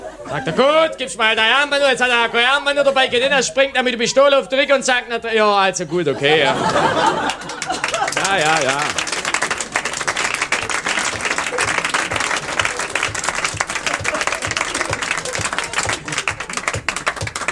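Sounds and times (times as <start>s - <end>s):
laughter: 0.0s - 17.5s
speech: 0.3s - 7.5s, 8.3s - 9.0s
audience applause: 6.4s - 17.5s.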